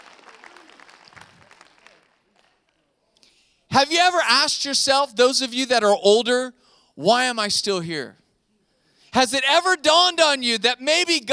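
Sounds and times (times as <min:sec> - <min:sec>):
audience clapping: 0:00.0 - 0:02.8
speech: 0:03.8 - 0:08.2, 0:09.1 - 0:11.3.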